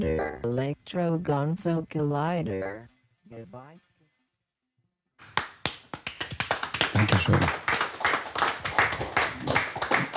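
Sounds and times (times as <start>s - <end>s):
speech: 0.0s - 3.9s, 7.0s - 7.6s
audience applause at a live performance: 6.0s - 10.1s.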